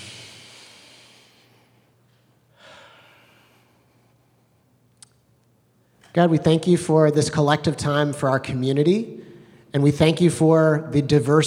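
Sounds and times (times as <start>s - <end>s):
group of people taking a deep breath together at a community gathering: 0.0s - 4.2s, 9.2s - 9.7s
speech: 6.1s - 11.4s.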